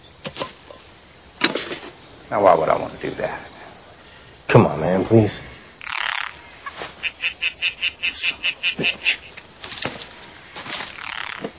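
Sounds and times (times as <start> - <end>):
steady hiss: 0.0 - 11.5
speech: 2.3 - 3.5, 4.5 - 5.4
tree frog croaking: 5.7 - 9.6, 10.8 - 11.5.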